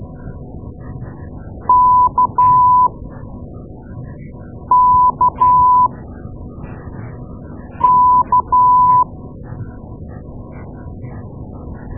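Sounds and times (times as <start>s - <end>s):
morse code beeps: 1.7s - 2.9s, 4.7s - 5.9s, 7.8s - 9.1s.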